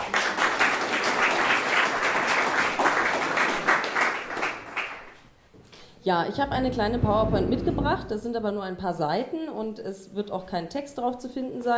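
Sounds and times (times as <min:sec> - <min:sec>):
audience applause: 0:00.0 - 0:05.1
speech: 0:06.0 - 0:11.7.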